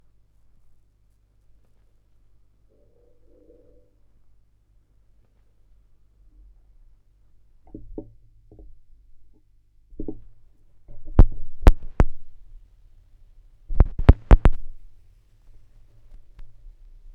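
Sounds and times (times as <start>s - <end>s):
vinyl record noise: 13.7s - 14.8s.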